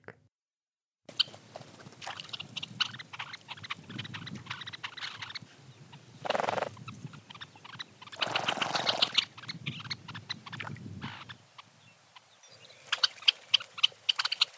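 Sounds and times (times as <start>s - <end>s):
red-necked phalarope calling: 1.1s - 14.4s.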